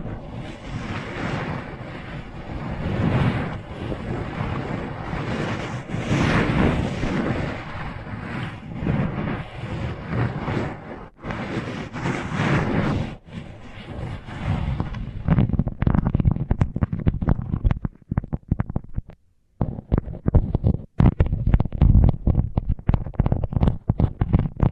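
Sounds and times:
rubbing and scratching on microphones under tape: 0:00.0 - 0:24.7.

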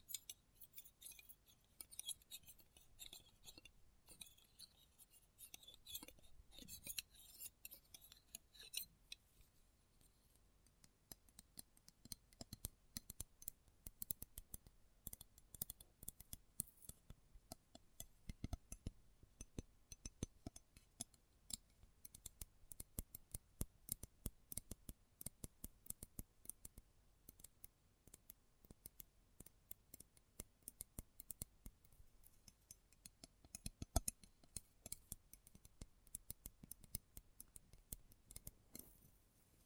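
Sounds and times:
close-up metallic clicks, snips and scrapes: 0:00.0 - 0:09.2, 0:10.8 - 0:38.9.

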